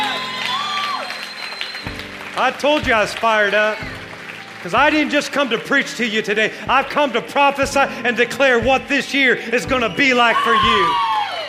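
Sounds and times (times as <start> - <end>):
audience hand clapping: 0.0 - 7.7, 10.0 - 11.4
speech: 2.4 - 3.9, 4.6 - 11.1.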